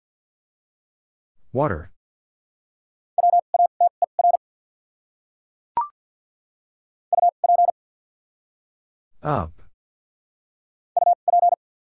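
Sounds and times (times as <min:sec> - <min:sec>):
speech: 0:01.5 - 0:01.9, 0:09.2 - 0:09.6
Morse code beeps on a steady mid-pitched tone: 0:03.2 - 0:04.4, 0:07.1 - 0:07.7, 0:11.0 - 0:11.6.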